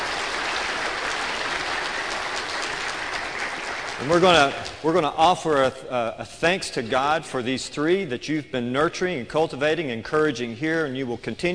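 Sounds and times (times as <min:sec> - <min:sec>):
audience applause: 0:00.0 - 0:04.8
speech: 0:04.0 - 0:11.5.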